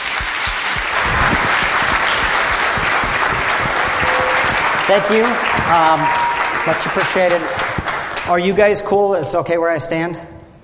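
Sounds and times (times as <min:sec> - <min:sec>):
audience applause welcoming a guest speaker: 0:00.0 - 0:08.9
speech: 0:04.9 - 0:07.6, 0:08.3 - 0:10.3.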